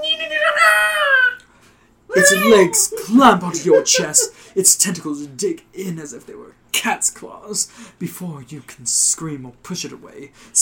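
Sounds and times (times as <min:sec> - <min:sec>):
voice imitating a creature's war cry: 0:00.0 - 0:01.4, 0:02.1 - 0:02.8
laughter: 0:02.1 - 0:04.5
speech: 0:02.2 - 0:10.6.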